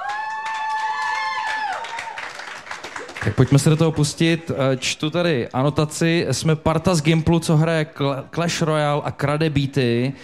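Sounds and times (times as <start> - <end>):
audience applause: 0.0 - 4.9
speech: 3.2 - 10.2.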